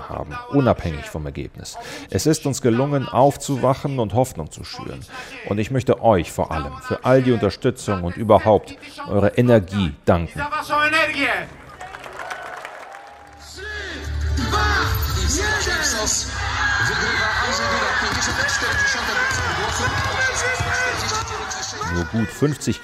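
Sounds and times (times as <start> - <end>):
speech: 0.1 - 11.6, 14.6 - 21.1, 21.7 - 22.8
supporters cheering at election rally: 11.0 - 22.8.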